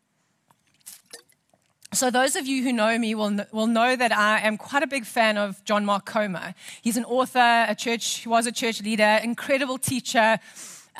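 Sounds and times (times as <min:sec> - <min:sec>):
sipping a drink: 0:00.5 - 0:01.9
speech: 0:02.0 - 0:10.9.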